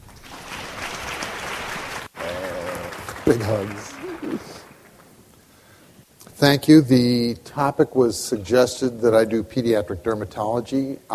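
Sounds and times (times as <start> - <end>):
audience applause welcoming a dermatologist to the stage: 0.0 - 5.2
speech: 3.3 - 4.5, 6.4 - 11.1.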